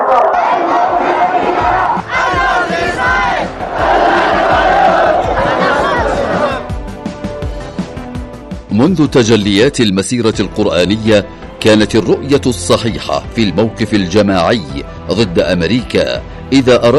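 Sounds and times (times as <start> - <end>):
large crowd shouting a slogan in unison: 0.1 - 6.7
speech: 8.9 - 16.9.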